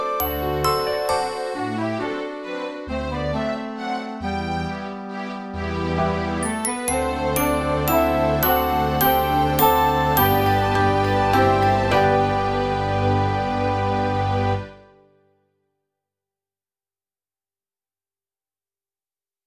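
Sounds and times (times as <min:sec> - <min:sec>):
orchestral synth music: 0:00.2 - 0:14.9.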